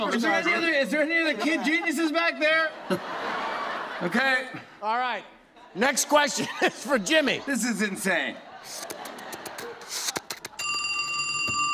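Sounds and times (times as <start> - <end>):
speech: 0.0 - 3.4, 4.0 - 9.0
laughter: 0.0 - 4.8, 5.6 - 10.7
telephone ringing with a metallic bell tone: 10.6 - 11.7.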